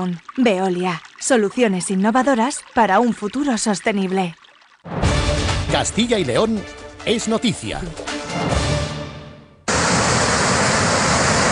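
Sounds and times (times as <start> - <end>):
speech: 0.0 - 5.0, 5.7 - 8.7
loud storm in the Fornela valley: 9.7 - 11.5.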